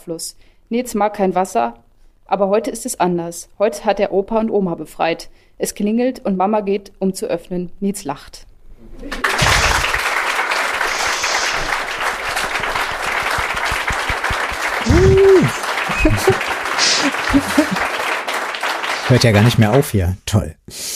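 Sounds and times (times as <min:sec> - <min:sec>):
speech: 0:00.0 - 0:09.4, 0:16.0 - 0:18.0, 0:19.1 - 0:20.9
laughter: 0:09.1 - 0:19.9
audience applause: 0:09.1 - 0:20.0
voices calling out: 0:14.1 - 0:19.8.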